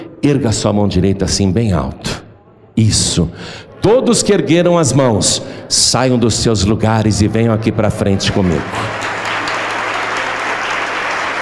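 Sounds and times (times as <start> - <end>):
speech: 0.2 - 2.2, 2.8 - 9.2
audience applauding: 8.2 - 11.4.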